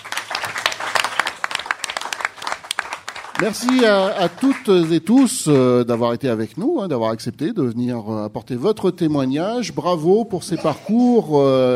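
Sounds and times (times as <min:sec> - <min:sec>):
applause: 0:00.0 - 0:06.2
speech: 0:03.4 - 0:11.7.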